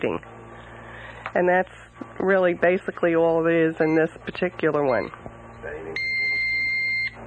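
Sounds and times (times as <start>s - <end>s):
speech: 0.0s - 0.3s, 1.0s - 6.1s
faint low hum: 0.0s - 7.2s
blood glucose meter timer buzzing: 2.6s - 7.2s.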